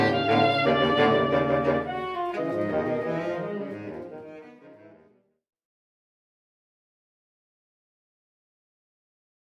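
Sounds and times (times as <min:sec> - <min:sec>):
saxophone: 0:00.0 - 0:05.2.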